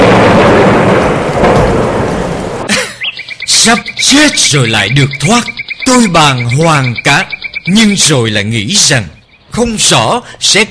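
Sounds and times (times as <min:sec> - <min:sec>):
heavy rain downpour: 0:00.0 - 0:07.1
speech: 0:03.6 - 0:10.7.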